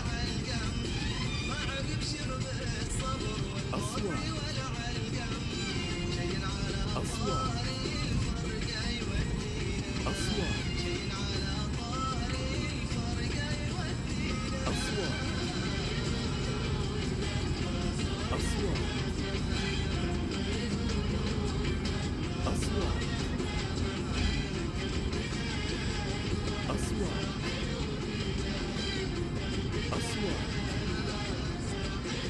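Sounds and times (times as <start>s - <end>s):
cars travelling on a road: 0.0s - 32.2s
radio voice: 3.2s - 5.4s, 6.4s - 11.1s, 14.5s - 15.6s, 18.1s - 19.2s, 22.4s - 23.3s, 26.6s - 27.6s, 29.8s - 31.2s.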